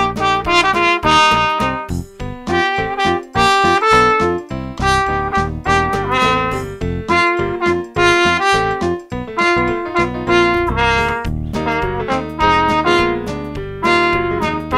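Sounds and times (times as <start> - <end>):
jazz music: 0.0 - 14.7.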